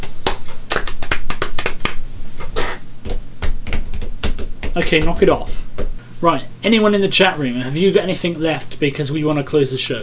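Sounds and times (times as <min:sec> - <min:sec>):
hands drumming on legs: 0:00.0 - 0:02.0, 0:03.0 - 0:06.0
speech: 0:04.8 - 0:05.6, 0:06.2 - 0:10.0.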